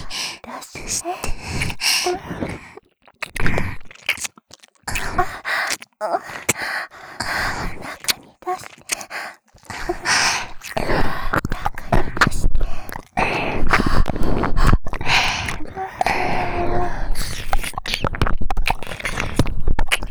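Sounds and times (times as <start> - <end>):
ear licking: 0.0 - 20.0
person moaning: 15.6 - 17.0.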